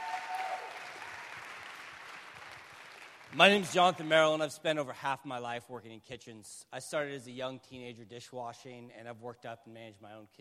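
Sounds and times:
audience applause: 0.0s - 3.8s
speech: 3.3s - 10.3s.

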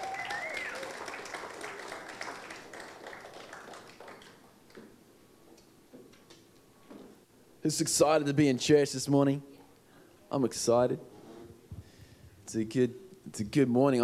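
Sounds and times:
round of applause for the band: 0.0s - 4.8s
speech: 7.6s - 9.5s, 10.3s - 11.1s, 12.5s - 14.0s.

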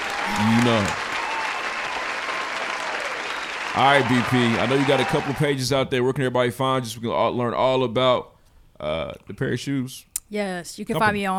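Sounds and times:
applause: 0.0s - 5.6s
speech: 0.3s - 1.0s, 3.8s - 11.3s.

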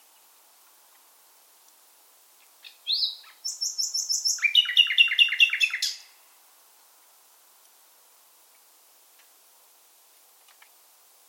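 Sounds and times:
common nightingale singing: 2.5s - 6.2s.

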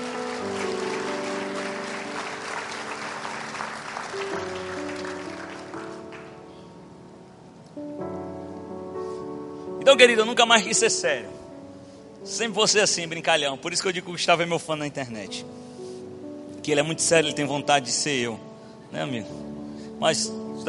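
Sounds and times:
audience applause: 0.0s - 6.4s
speech: 9.9s - 11.4s, 12.3s - 15.7s, 16.7s - 19.4s, 20.0s - 20.6s.

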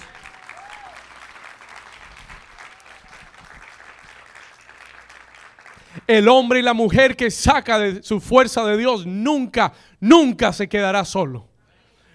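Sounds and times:
loud applause: 0.0s - 6.1s
speech: 6.0s - 11.5s.

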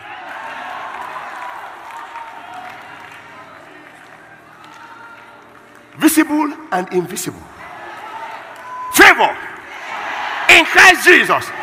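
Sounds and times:
hands clapping: 0.9s - 6.3s
speech: 6.0s - 7.6s, 9.2s - 9.5s, 10.5s - 11.6s.

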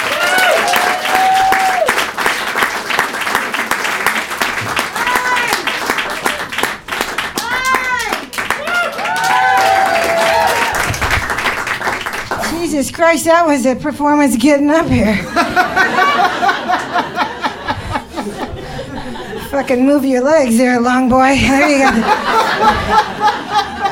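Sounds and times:
cheering and whoops: 0.0s - 2.0s, 5.0s - 5.6s, 7.4s - 10.9s
audience applause: 0.0s - 12.6s, 15.5s - 19.5s
speech: 12.8s - 17.1s, 19.5s - 23.4s
laughter: 15.0s - 19.9s, 21.3s - 23.8s.

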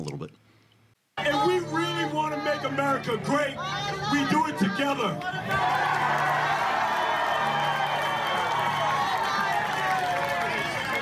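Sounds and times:
speech: 1.2s - 6.3s
large crowd cheering: 1.2s - 10.9s
large crowd applauding: 5.2s - 10.9s.

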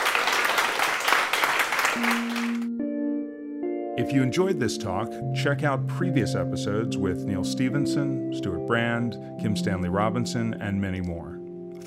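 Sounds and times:
audience applause: 0.0s - 2.7s
speech: 4.0s - 11.8s.

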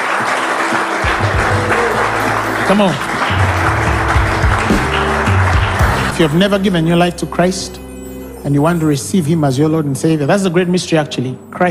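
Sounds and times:
audience clapping in praise: 0.0s - 6.4s
speech: 2.7s - 3.1s, 6.2s - 7.8s, 8.4s - 11.6s.

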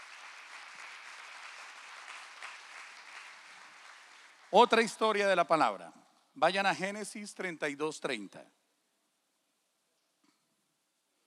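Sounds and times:
audience applauding: 0.0s - 5.4s
speech: 4.5s - 8.6s.

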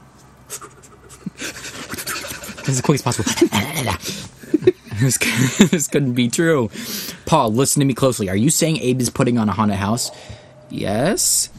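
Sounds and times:
rapid panting, hyperventilating: 0.5s - 4.6s
laughter: 1.1s - 6.2s
speech: 2.7s - 11.5s.

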